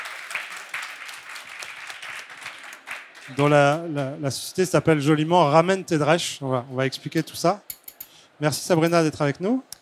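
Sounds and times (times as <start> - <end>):
audience applause: 0.0 - 4.0
speech: 3.3 - 7.8, 8.4 - 9.7.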